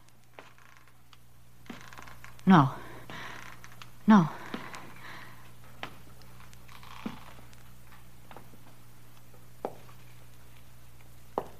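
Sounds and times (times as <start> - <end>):
creaking of an old house: 0.0 - 8.8
speech: 2.5 - 2.8, 4.1 - 4.4.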